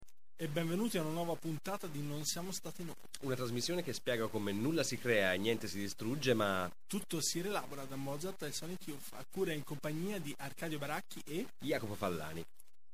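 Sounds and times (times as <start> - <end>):
distortion: 0.0 - 12.9.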